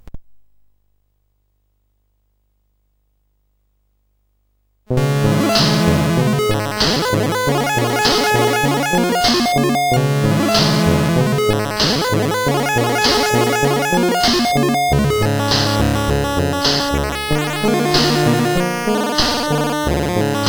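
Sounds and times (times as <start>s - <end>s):
wild CSG8580R5 synthesizer arpeggio: 5.0s - 20.4s.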